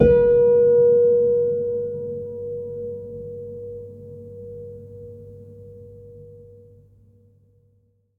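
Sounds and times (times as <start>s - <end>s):
EDUcon B3 keyless piano body sound: 0.0s - 3.8s.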